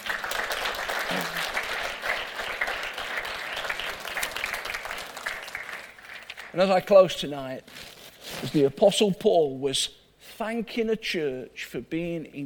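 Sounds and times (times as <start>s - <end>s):
audience clapping: 0.0s - 6.6s
speech: 6.6s - 12.4s.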